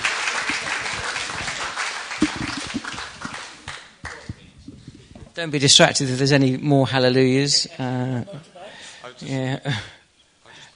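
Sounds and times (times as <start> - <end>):
audience applause welcoming a speaker to the stage: 0.0 - 4.4
speech: 5.4 - 8.6, 9.2 - 10.0.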